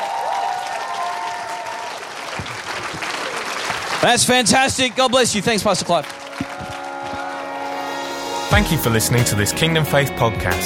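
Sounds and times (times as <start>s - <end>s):
audience applause: 0.0s - 8.2s
speech: 4.0s - 6.2s, 8.5s - 10.6s.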